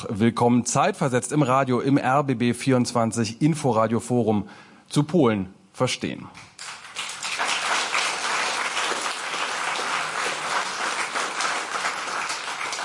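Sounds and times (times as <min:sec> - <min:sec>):
speech: 0:00.0 - 0:06.5
applause from a packed hall audience at a rooftop lounge of a Berlin broadcaster: 0:06.6 - 0:12.8.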